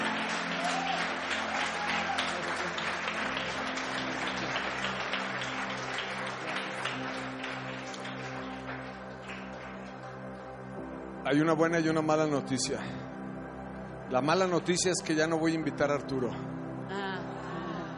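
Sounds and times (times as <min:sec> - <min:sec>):
audience applause: 0:00.0 - 0:10.4
speech: 0:11.3 - 0:13.2, 0:14.1 - 0:17.0.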